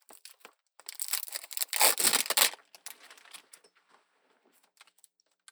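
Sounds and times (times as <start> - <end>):
ASMR ear cleaning of the left ear: 0.9 - 2.9.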